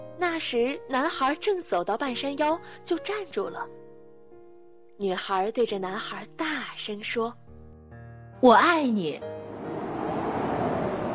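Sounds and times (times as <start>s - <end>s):
speech: 0.2s - 3.8s, 5.0s - 7.4s, 8.4s - 9.3s
strong gust of wind blowing: 9.5s - 11.1s.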